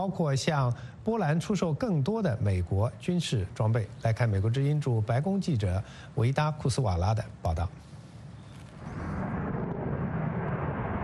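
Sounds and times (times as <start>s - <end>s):
speech: 0.0s - 7.9s
F-35 fighter jet flying over the White House: 8.8s - 11.0s.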